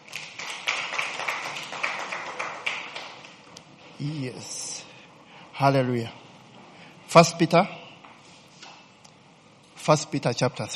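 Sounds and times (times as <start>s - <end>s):
audience hand clapping for the worship team: 0.0s - 3.6s
speech: 4.0s - 4.7s, 5.6s - 6.2s, 7.1s - 7.8s, 9.8s - 10.7s.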